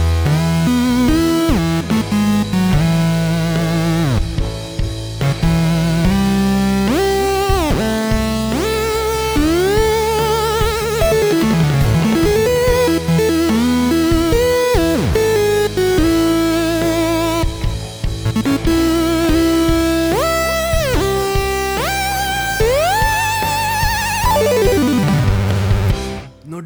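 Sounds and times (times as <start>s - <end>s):
chiptune song: 0.1s - 26.4s.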